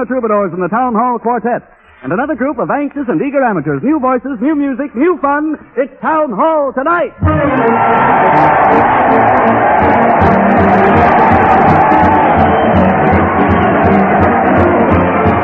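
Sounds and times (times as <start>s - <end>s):
speech: 0.0s - 11.7s
crowd cheering: 7.2s - 15.4s.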